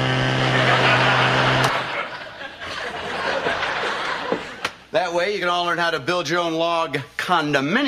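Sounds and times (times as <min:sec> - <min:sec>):
Binford 8200 chainsaw running: 0:00.0 - 0:02.0
laughter: 0:00.4 - 0:04.7
speech: 0:05.3 - 0:07.8.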